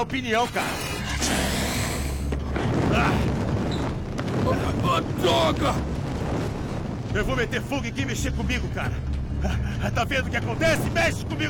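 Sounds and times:
speech: 0:00.0 - 0:01.5, 0:02.9 - 0:03.3, 0:04.3 - 0:06.0, 0:07.1 - 0:11.4
blowtorch in a dubbed film scene: 0:00.7 - 0:07.1.

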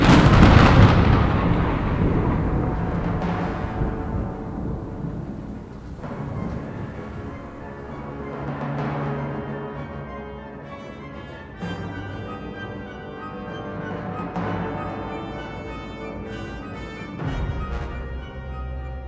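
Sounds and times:
thunder claps during a storm: 0:00.0 - 0:09.2.

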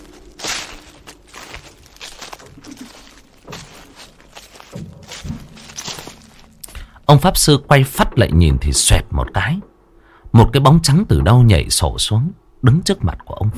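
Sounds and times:
footsteps crunching on rotting leaves: 0:00.0 - 0:07.0
speech: 0:07.1 - 0:09.7, 0:10.3 - 0:13.5.

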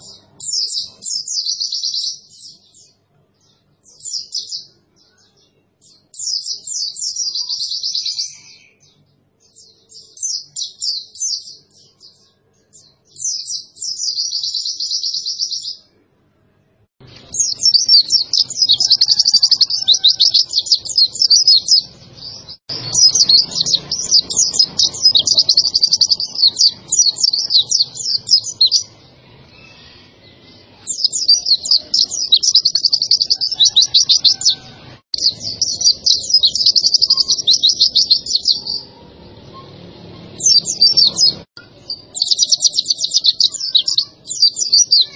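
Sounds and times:
white-eye song: 0:00.0 - 0:15.9, 0:17.0 - 0:45.1.

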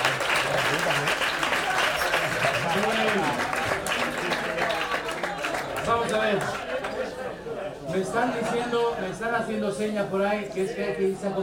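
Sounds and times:
studio audience applause on a television variety show: 0:00.0 - 0:07.2
speech: 0:06.1 - 0:06.7, 0:07.8 - 0:11.4.

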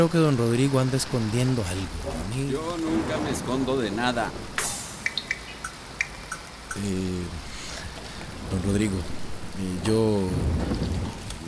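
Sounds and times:
speech: 0:00.0 - 0:04.8, 0:06.8 - 0:07.5, 0:08.5 - 0:11.4
heavy rain during a storm: 0:00.0 - 0:11.4
thunder during a storm: 0:02.0 - 0:05.6, 0:07.4 - 0:11.4.

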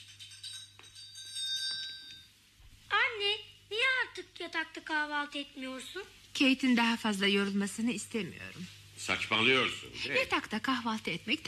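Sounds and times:
maid's call bell ringing: 0:00.2 - 0:02.3
speech: 0:04.4 - 0:11.4.

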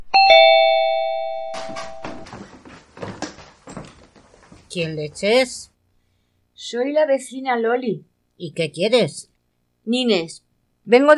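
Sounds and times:
two-tone doorbell chime: 0:00.1 - 0:02.2
speech: 0:04.7 - 0:05.7, 0:06.6 - 0:11.1.

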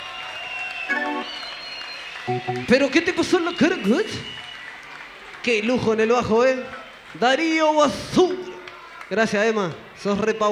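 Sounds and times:
audience applause for the musicians: 0:00.0 - 0:07.6
speech: 0:02.3 - 0:04.5, 0:05.4 - 0:08.4, 0:09.1 - 0:10.5.

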